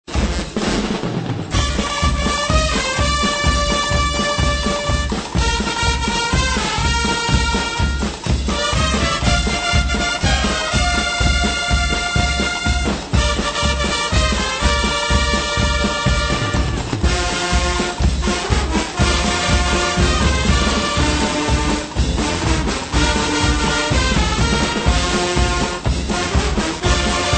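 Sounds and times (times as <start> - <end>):
guggenmusik band playing: 0.1 - 27.3.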